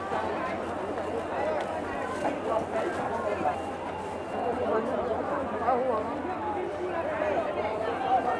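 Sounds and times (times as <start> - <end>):
people: 0.0 - 8.3.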